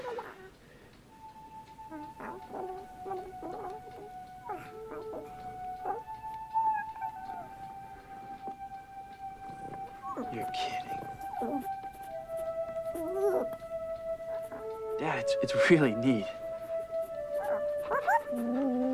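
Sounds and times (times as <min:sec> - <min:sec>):
whimpering yelps and gurgling chirps: 0:00.0 - 0:00.6, 0:01.8 - 0:08.6, 0:09.6 - 0:13.6, 0:14.2 - 0:14.8, 0:17.3 - 0:18.9
dog howling: 0:01.8 - 0:14.9, 0:17.2 - 0:18.9
speech: 0:15.4 - 0:16.4.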